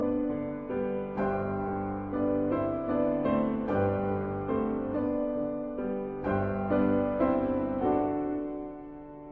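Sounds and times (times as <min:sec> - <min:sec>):
pastorale in G major: 0:00.0 - 0:09.2.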